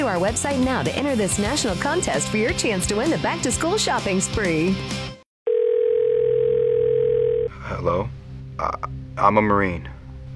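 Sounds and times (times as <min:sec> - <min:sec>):
speech: 0:00.1 - 0:05.1, 0:08.0 - 0:10.0
telephone dial tone before a call: 0:05.5 - 0:07.5.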